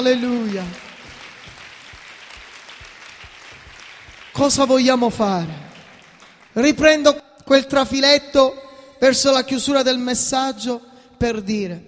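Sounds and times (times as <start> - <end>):
speech: 0.0 - 0.8, 4.4 - 5.7, 6.6 - 11.8
audience applauding: 0.0 - 6.6.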